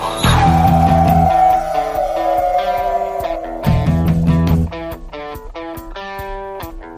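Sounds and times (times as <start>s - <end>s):
horror movie music: 0.0s - 4.7s.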